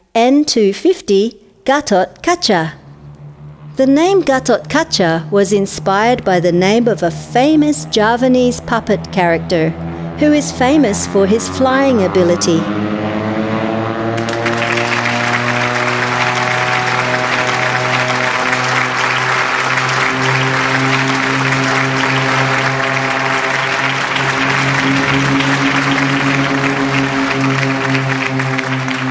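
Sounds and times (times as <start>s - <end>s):
speech: 0.2s - 2.8s, 3.8s - 13.0s
crowd cheering and applauding at airport tower: 11.1s - 29.0s.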